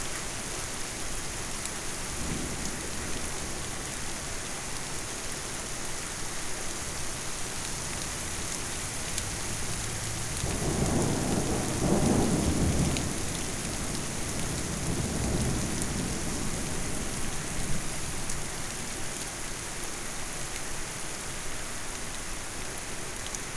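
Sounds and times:
dense hiss of rain: 0:00.0 - 0:23.5
distant thunder rumbling: 0:10.2 - 0:17.7.

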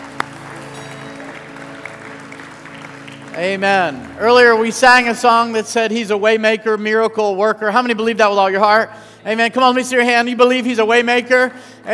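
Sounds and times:
audience applause: 0:00.0 - 0:04.8
speech: 0:03.4 - 0:11.9.

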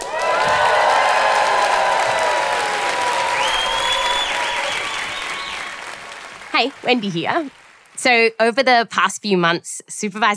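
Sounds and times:
audience cheering: 0:00.0 - 0:07.7
applause: 0:00.0 - 0:08.2
speech: 0:06.6 - 0:10.3.

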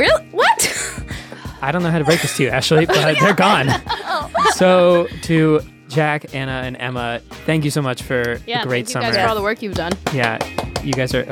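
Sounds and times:
speech: 0:01.6 - 0:11.2
laughter: 0:01.8 - 0:05.0
single person clapping: 0:09.9 - 0:11.2.

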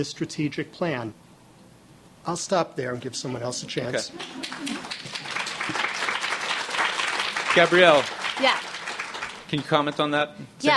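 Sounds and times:
speech: 0:00.0 - 0:01.2, 0:02.2 - 0:05.0, 0:07.6 - 0:08.7, 0:09.5 - 0:10.7
laughter: 0:03.4 - 0:05.8
audience applause: 0:04.1 - 0:10.2.

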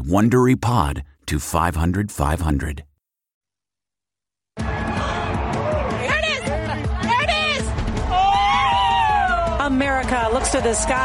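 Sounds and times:
speech: 0:00.0 - 0:02.9, 0:09.7 - 0:11.0
crowd cheering at total solar eclipse: 0:04.6 - 0:11.0.

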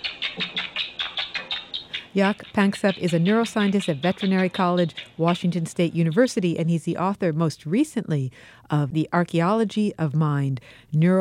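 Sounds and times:
rats chirping during rough-and-tumble play: 0:00.0 - 0:06.3
speech: 0:02.2 - 0:11.2.

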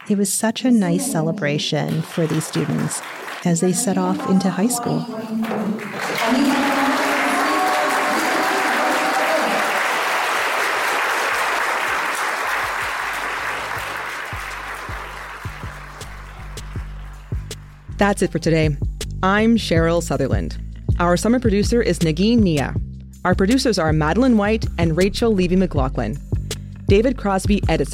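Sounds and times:
families clapping at graduation ceremony: 0:00.0 - 0:17.8
speech: 0:00.1 - 0:06.9, 0:18.0 - 0:26.3, 0:26.9 - 0:27.9.

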